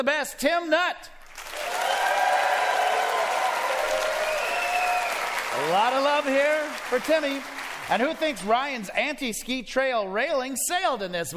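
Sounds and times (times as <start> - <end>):
speech: 0.0 - 1.8, 5.6 - 11.3
audience applause: 1.2 - 8.8
faint cheers and whoops: 1.5 - 5.6.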